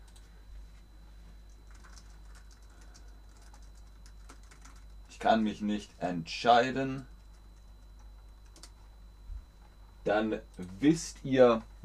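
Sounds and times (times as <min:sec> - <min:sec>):
typing a chat message on a computer keyboard: 0:01.5 - 0:05.0, 0:07.0 - 0:08.8
speech: 0:05.2 - 0:07.1, 0:10.1 - 0:11.7.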